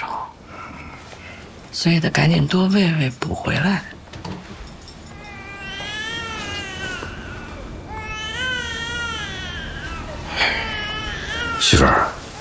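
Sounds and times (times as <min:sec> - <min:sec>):
speech: 0:01.8 - 0:04.0
baby girl crying: 0:05.1 - 0:12.4.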